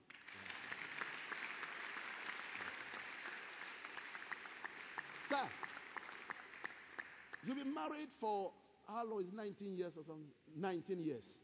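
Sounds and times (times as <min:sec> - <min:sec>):
audience clapping: 0:00.0 - 0:07.9
speech: 0:05.4 - 0:05.6, 0:07.4 - 0:11.4.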